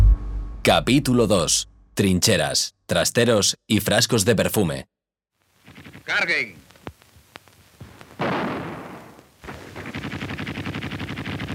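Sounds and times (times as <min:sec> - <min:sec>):
heavy explosive boom: 0:00.0 - 0:02.0
speech: 0:00.7 - 0:05.0, 0:06.1 - 0:06.6
rapid steady machine-gun fire: 0:08.2 - 0:11.5
scattered sharp gunshots in a battle sound effect: 0:08.2 - 0:11.5.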